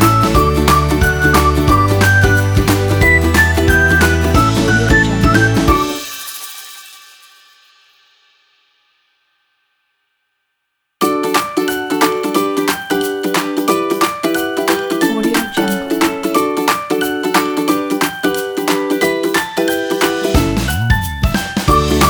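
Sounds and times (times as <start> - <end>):
happy music: 0.0 - 6.4, 11.0 - 22.0.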